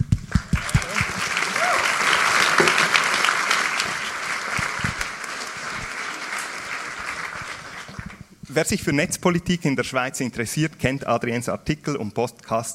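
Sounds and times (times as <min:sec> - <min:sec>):
audience applause: 0:00.3 - 0:08.3
speech: 0:08.6 - 0:12.7.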